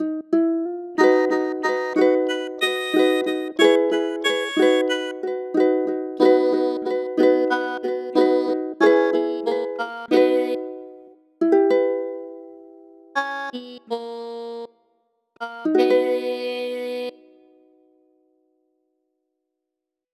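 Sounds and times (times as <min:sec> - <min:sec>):
song: 0:01.0 - 0:12.6, 0:13.2 - 0:14.8, 0:15.4 - 0:17.4.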